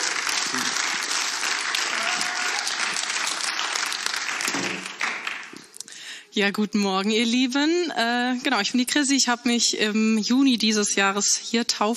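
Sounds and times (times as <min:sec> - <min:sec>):
audience applauding: 0:00.0 - 0:05.8
speech: 0:06.4 - 0:11.9.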